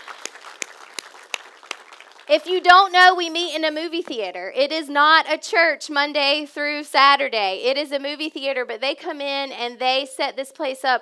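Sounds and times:
audience round of applause: 0.0 - 2.3
speech: 2.3 - 11.0.

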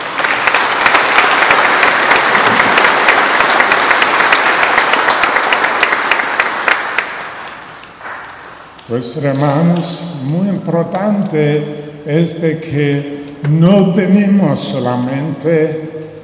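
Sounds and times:
audience applauding: 0.0 - 8.3
speech: 8.9 - 16.2.

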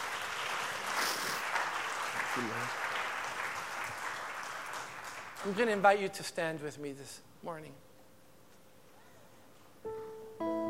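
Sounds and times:
audience applauding with hand claps: 0.0 - 5.9
speech: 2.4 - 2.8, 5.4 - 7.9.

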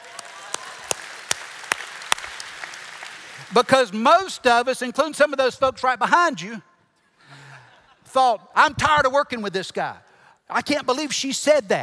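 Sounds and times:
audience applause: 0.0 - 3.8
speech: 3.5 - 6.7, 8.1 - 11.8.

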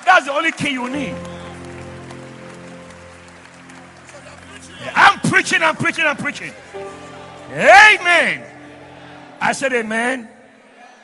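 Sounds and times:
crowd clapping: 0.0 - 7.5
speech: 0.2 - 1.4, 4.8 - 8.5, 9.4 - 10.3
sustained organ-like tones: 1.1 - 10.8.

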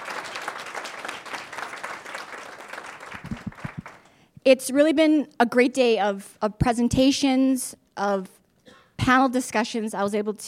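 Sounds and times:
audience applause: 0.0 - 4.1
speech: 4.4 - 8.4, 9.0 - 10.4.

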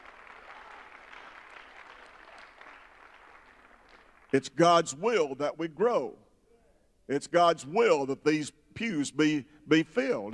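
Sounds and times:
audience clapping in praise: 0.0 - 4.9
speech: 4.3 - 6.2, 7.1 - 10.3.

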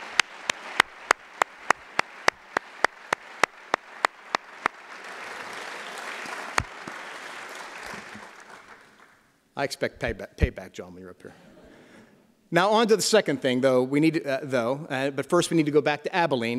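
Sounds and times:
audience applause: 0.0 - 9.2
speech: 9.6 - 11.5, 12.5 - 16.5.

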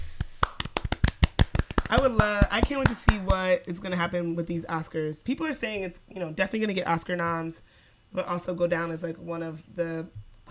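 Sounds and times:
hands clapping: 0.0 - 3.5
speech: 1.9 - 10.5.

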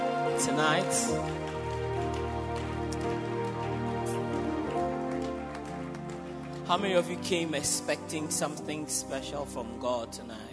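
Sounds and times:
audience clapping hands: 0.0 - 8.7
speech: 0.4 - 1.5, 6.7 - 10.5.

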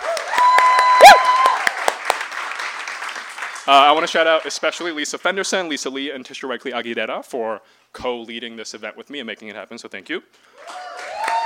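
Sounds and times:
high whoop from the audience: 0.0 - 1.8, 10.5 - 11.4
audience clapping at a reading event: 0.0 - 4.9, 10.6 - 11.4
speech: 3.7 - 10.8.

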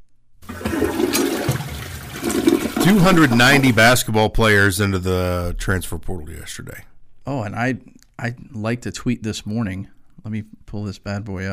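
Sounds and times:
toilet flushing: 0.4 - 4.1
speech: 2.8 - 11.5.

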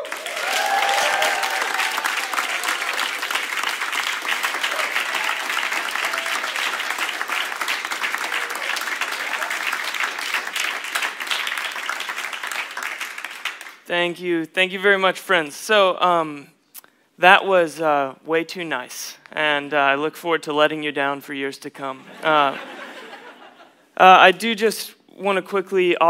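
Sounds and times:
crowd noise: 0.0 - 12.6
loud applause from a large church audience welcoming a speaker: 0.0 - 13.8
speech: 13.9 - 16.6, 17.2 - 22.7, 24.0 - 26.0
laughter: 22.0 - 23.9.

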